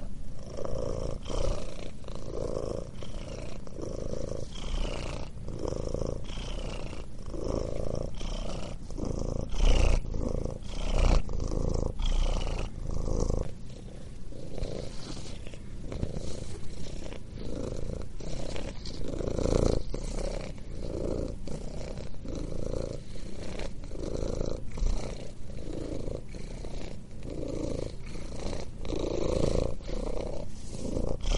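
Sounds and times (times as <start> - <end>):
cat purring: 0.0 - 31.3.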